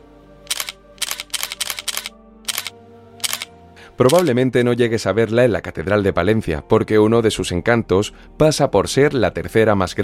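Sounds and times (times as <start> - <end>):
camera shutter clicks of tourists taking photos: 0.5 - 4.3
speech: 4.0 - 10.0.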